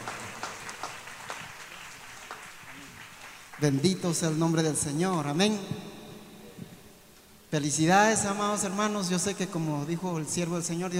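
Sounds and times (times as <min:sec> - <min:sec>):
crowd clapping: 0:00.0 - 0:04.6
speech: 0:03.6 - 0:05.9, 0:07.5 - 0:10.9.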